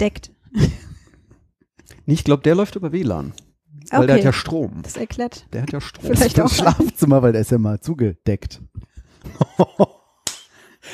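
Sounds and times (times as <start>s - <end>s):
speech: 0.0s - 0.8s, 2.1s - 10.0s
laughter: 6.2s - 7.0s, 9.2s - 10.0s
hand claps for a clap switch: 10.2s - 10.5s.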